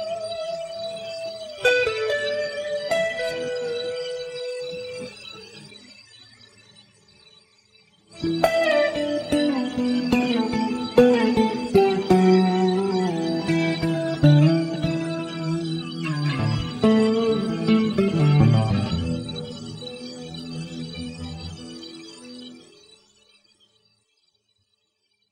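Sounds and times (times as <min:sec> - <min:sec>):
dry solo guitar: 0:00.0 - 0:05.6, 0:08.2 - 0:22.7.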